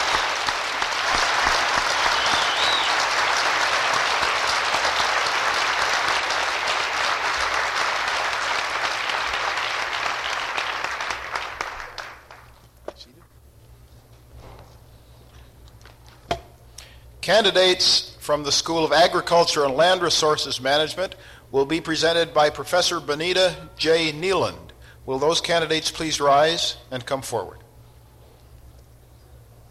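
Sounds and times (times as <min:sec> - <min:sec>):
audience applause at graduation ceremony: 0:00.0 - 0:12.6
speech: 0:17.3 - 0:27.6.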